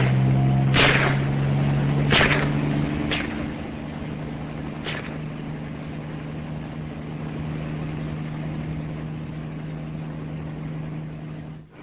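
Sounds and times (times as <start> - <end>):
gunfire: 0.0 - 1.4, 2.0 - 3.5, 4.8 - 5.2
helicopter taking off: 0.0 - 11.8.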